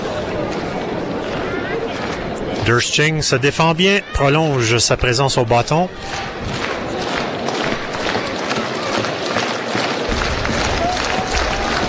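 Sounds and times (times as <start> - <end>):
baseball stadium crowd roaring and cheering: 0.0 - 11.8
speech: 2.6 - 6.6.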